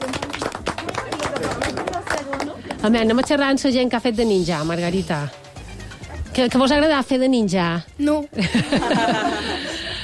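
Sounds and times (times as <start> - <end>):
audience applause at a lively event: 0.0 - 2.5
speech: 2.8 - 5.4, 6.4 - 9.6
laughter: 8.4 - 10.0.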